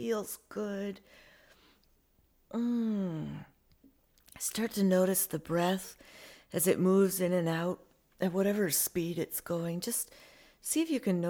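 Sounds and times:
speech: 0:00.0 - 0:01.3, 0:02.5 - 0:03.5, 0:04.4 - 0:11.2
person yawning while stretching: 0:02.5 - 0:03.5.

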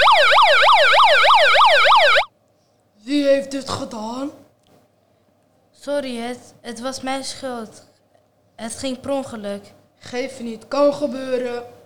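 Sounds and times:
ambulance siren: 0:00.0 - 0:02.3
speech: 0:03.5 - 0:04.5, 0:05.8 - 0:07.9, 0:08.6 - 0:11.8.

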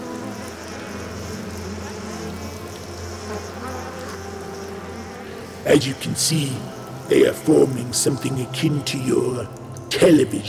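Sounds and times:
swarm of fireflies buzzing into formation: 0:00.0 - 0:10.4
speech: 0:05.6 - 0:10.4.

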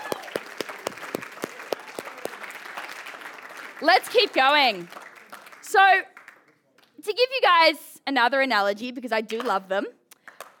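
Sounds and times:
audience applause: 0:00.0 - 0:06.5
speech: 0:03.8 - 0:05.0, 0:05.7 - 0:06.1, 0:07.0 - 0:10.0.

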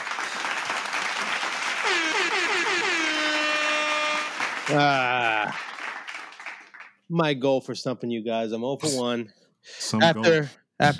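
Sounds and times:
clapping: 0:00.0 - 0:07.0
speech: 0:04.7 - 0:05.7, 0:07.1 - 0:10.9.

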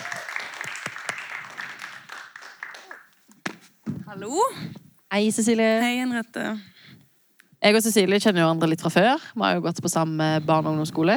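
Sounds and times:
audience applause: 0:00.0 - 0:03.4
speech: 0:04.2 - 0:06.7, 0:07.6 - 0:11.1.

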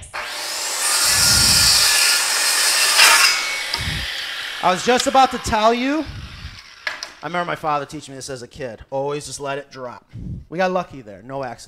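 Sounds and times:
saw cutting a five-foot length of 2x4 lumber: 0:00.0 - 0:08.3
speech: 0:04.6 - 0:06.2, 0:07.2 - 0:11.6.

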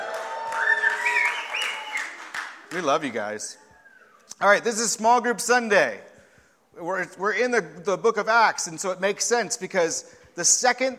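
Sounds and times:
whoops and shouts: 0:00.0 - 0:02.2, 0:03.5 - 0:04.3
audience clapping: 0:00.0 - 0:03.4
speech: 0:02.7 - 0:03.6, 0:04.4 - 0:06.1, 0:06.8 - 0:10.9.

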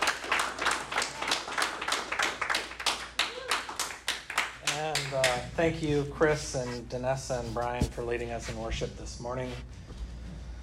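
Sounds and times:
audience applause welcoming a speaker at a morning worship service: 0:00.0 - 0:05.5
speech: 0:05.6 - 0:09.8.

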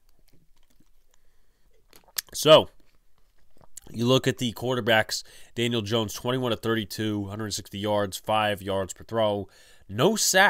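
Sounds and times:
person sipping a drink: 0:00.0 - 0:04.0
speech: 0:02.4 - 0:02.8, 0:04.0 - 0:10.4.

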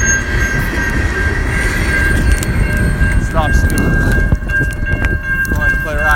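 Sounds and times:
train wheel squeal: 0:00.0 - 0:03.2
moving passenger train rumbling: 0:00.0 - 0:06.1.

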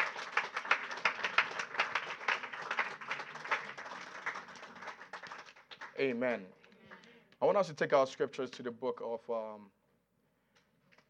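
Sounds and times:
crowd applauding: 0:00.0 - 0:06.2
speech: 0:06.0 - 0:06.6, 0:07.4 - 0:09.8.

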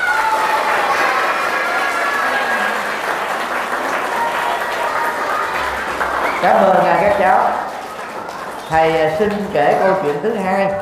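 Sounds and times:
faint cheering: 0:00.0 - 0:10.8
large audience applause: 0:00.0 - 0:10.8
speech: 0:06.4 - 0:07.6, 0:08.7 - 0:10.8.

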